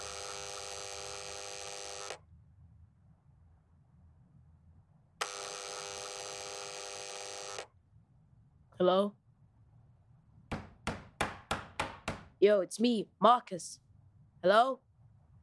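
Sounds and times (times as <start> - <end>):
door entry buzzer ringing: 0.0 - 2.2, 5.2 - 7.7
speech: 8.8 - 9.2, 12.4 - 13.8, 14.4 - 14.8.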